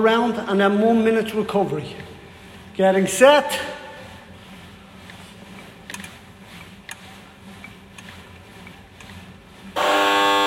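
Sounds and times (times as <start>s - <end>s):
speech: 0.0s - 2.1s, 2.8s - 3.8s
boxing round buzzer: 9.8s - 10.4s.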